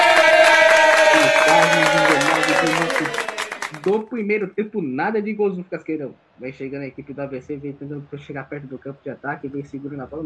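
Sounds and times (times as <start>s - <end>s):
agitated football crowd in stadium: 0.0s - 3.9s
speech: 3.9s - 10.2s.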